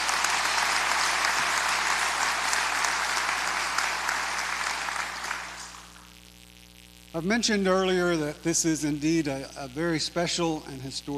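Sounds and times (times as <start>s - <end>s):
crowd applause: 0.0s - 6.0s
speech: 7.1s - 11.1s.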